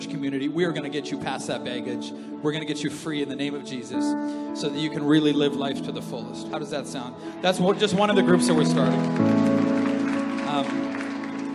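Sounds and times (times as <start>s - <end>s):
speech: 0.2s - 9.7s, 10.5s - 11.0s
audience clapping: 7.4s - 11.5s.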